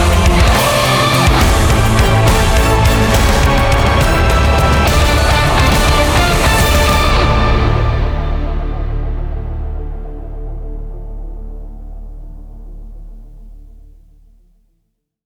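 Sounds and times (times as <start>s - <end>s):
orchestral hybrid TV theme outro: 0.0s - 11.7s.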